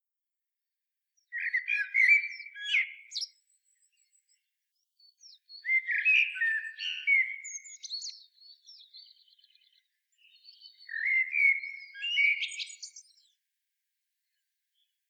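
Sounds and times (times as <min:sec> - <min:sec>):
common blackbird singing: 0:01.2 - 0:04.4, 0:05.0 - 0:13.4.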